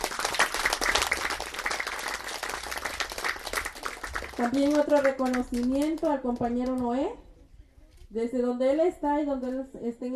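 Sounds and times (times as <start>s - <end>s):
audience applause: 0.0s - 6.0s
speech: 4.4s - 7.2s, 8.1s - 10.1s.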